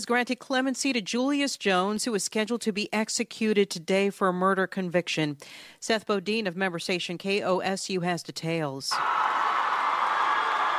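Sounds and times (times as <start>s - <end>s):
speech: 0.0s - 9.6s
crowd of protesters cheering in state capitol halls: 8.9s - 10.7s.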